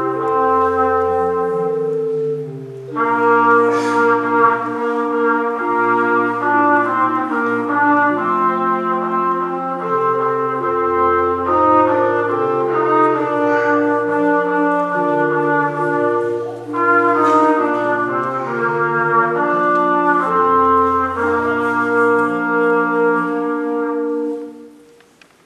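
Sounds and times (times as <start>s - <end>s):
trumpet minuet for Advent: 0.0s - 25.1s.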